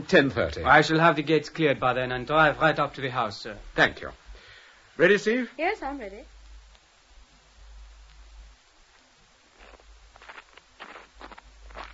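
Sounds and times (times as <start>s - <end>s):
speech: 0.0s - 4.2s, 5.0s - 6.3s
low steady hum: 0.0s - 11.9s
footsteps crunching on crisp snow at night: 9.5s - 11.9s.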